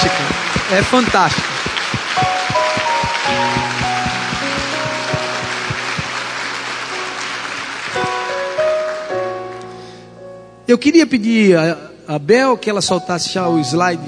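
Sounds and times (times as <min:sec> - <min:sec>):
audience clapping: 0:00.0 - 0:09.2
sustained keyboard chords: 0:00.0 - 0:10.6
speech: 0:00.7 - 0:01.5, 0:10.7 - 0:14.0.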